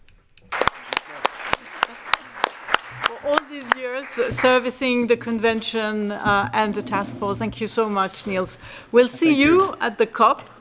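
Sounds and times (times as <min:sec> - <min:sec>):
audience applause: 0:00.5 - 0:04.8
speech: 0:03.3 - 0:10.5.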